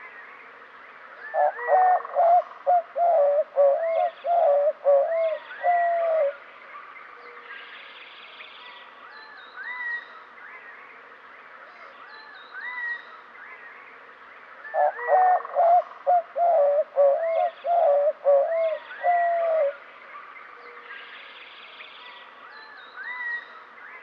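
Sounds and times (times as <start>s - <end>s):
white-winged dove hooting coos in western North America: 1.3s - 6.4s, 14.7s - 19.8s.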